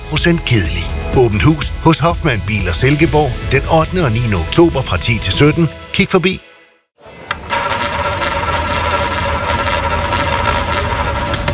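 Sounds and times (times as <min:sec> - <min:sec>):
speech: 0:00.1 - 0:06.5
roulette wheel spinning: 0:07.3 - 0:11.5.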